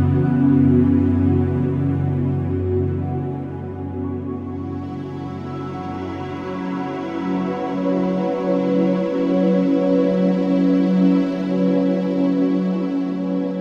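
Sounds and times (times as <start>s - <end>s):
ambient and cinematic soundscape: 0.0s - 13.6s.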